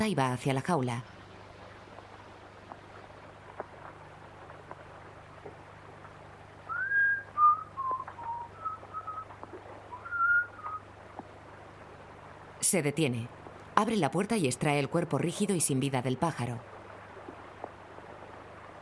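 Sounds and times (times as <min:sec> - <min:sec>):
speech: 0:00.0 - 0:01.2, 0:12.7 - 0:16.7
man whistling toward a birdcage: 0:06.7 - 0:09.3, 0:10.0 - 0:10.8.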